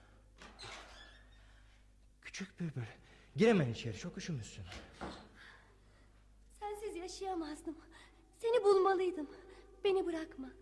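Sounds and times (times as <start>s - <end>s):
door creaking and sliding open: 0.4s - 1.6s, 4.7s - 5.3s
speech: 2.4s - 5.2s, 7.1s - 10.5s.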